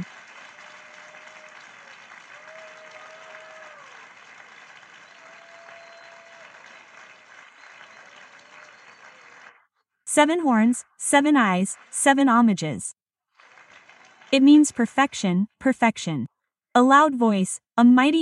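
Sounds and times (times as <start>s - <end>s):
audience applauding: 0.0s - 9.7s, 13.3s - 14.5s
speech: 10.2s - 13.0s, 14.3s - 18.2s.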